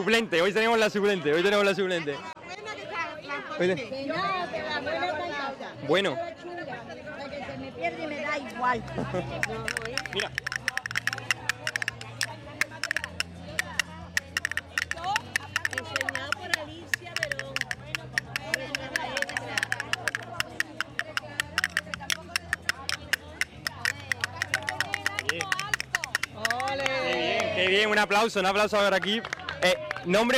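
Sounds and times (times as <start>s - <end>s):
speech: 0.0s - 2.4s, 3.4s - 6.5s, 7.8s - 10.4s, 28.0s - 30.3s
castanets playing: 9.0s - 27.1s.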